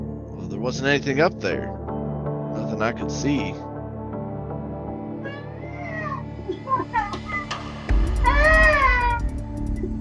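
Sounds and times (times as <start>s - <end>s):
speech: 0.6s - 1.8s, 2.6s - 3.7s
eerie wailing cry like a child's: 5.2s - 9.9s.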